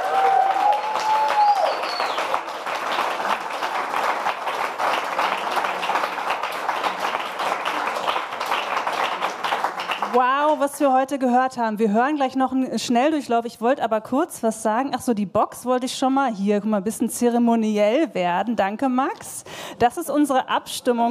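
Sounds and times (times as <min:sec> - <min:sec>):
audience applause: 0:00.0 - 0:10.6
speech: 0:10.2 - 0:21.0.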